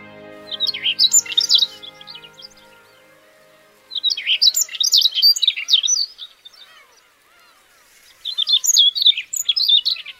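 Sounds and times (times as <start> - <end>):
soft music: 0.0 - 6.2
Siberian rubythroat song: 0.0 - 10.1.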